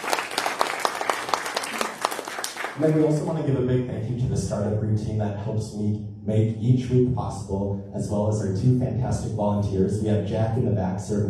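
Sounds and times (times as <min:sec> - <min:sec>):
audience applause: 0:00.0 - 0:03.2
speech: 0:02.8 - 0:11.2.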